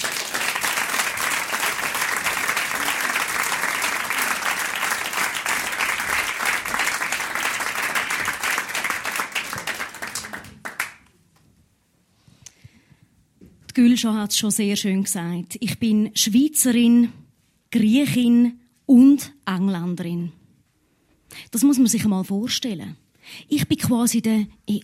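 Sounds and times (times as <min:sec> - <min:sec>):
audience applause: 0:00.0 - 0:11.1
speech: 0:13.8 - 0:20.4, 0:21.5 - 0:24.8.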